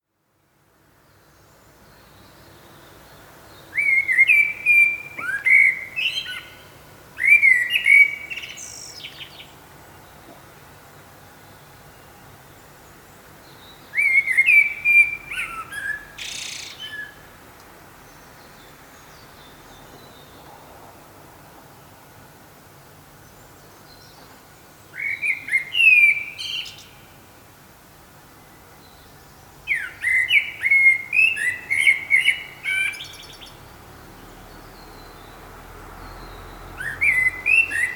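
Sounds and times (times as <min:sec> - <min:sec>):
common blackbird fluty whistled phrases: 0:03.7 - 0:06.6, 0:07.2 - 0:09.2, 0:13.9 - 0:17.2, 0:25.0 - 0:26.9, 0:29.7 - 0:33.4, 0:36.8 - 0:37.9.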